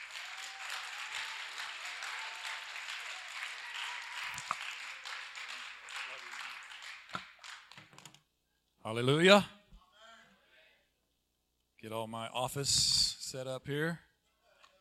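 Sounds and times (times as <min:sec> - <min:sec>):
audience applause: 0:00.0 - 0:08.0
speech: 0:08.9 - 0:09.6, 0:12.0 - 0:14.1.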